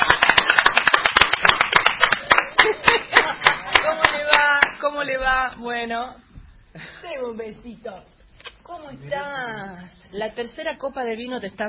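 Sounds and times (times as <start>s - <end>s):
group applause: 0.0s - 4.8s
laughter: 2.2s - 4.4s
speech: 4.9s - 11.6s.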